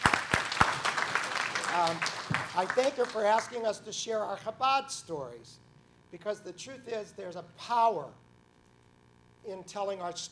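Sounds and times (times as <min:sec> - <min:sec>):
scattered audience claps after a storytelling session: 0:00.0 - 0:03.6
speech: 0:01.8 - 0:08.2, 0:09.4 - 0:10.3.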